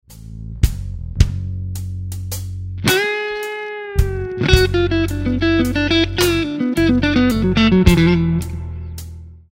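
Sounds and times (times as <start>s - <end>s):
guitar lick: 2.8s - 9.4s.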